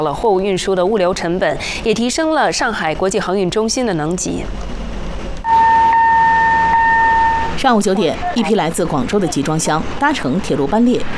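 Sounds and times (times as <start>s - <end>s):
speech: 0.0s - 4.8s, 7.6s - 11.1s
steady high-pitched tone: 5.4s - 8.7s.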